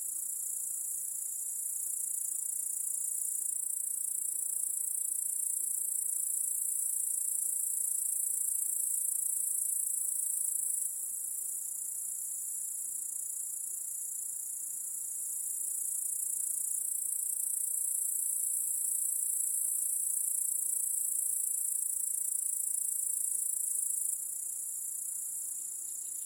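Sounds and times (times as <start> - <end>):
cricket chorus: 0.0 - 26.2.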